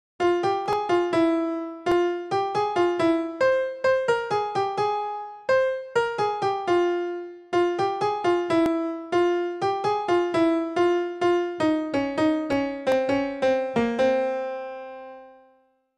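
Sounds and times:
background piano music ringtone, Kannada: 0.2s - 15.6s.

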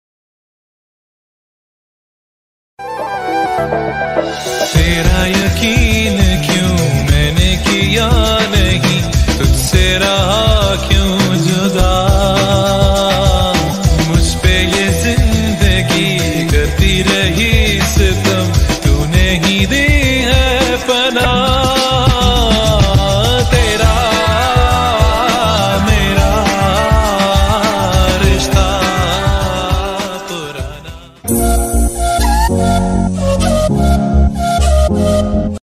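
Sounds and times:
background music bass ringtone: 2.9s - 35.6s.

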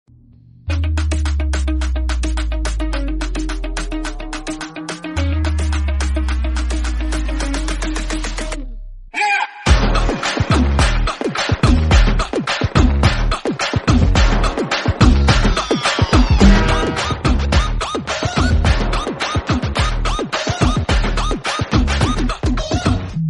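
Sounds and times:
entry background music: 0.2s - 23.2s.

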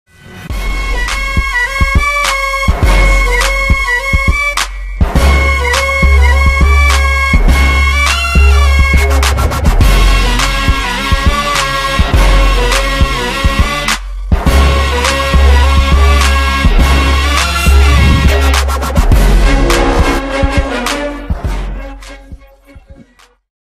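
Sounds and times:
Telugu villain background music: 0.1s - 23.4s.

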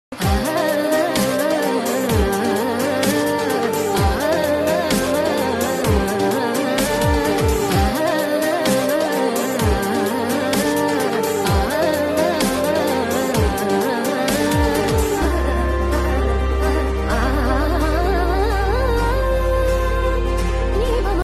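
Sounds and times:
background music: 0.1s - 21.2s
person humming a love song: 0.2s - 21.2s.

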